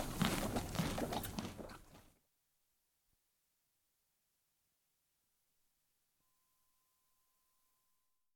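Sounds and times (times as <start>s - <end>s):
horse eating carrot in stable: 0.0s - 2.1s.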